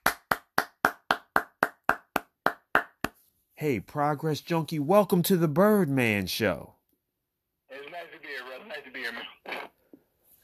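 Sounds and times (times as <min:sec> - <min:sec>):
hand claps: 0:00.0 - 0:03.2
speech: 0:03.6 - 0:06.8.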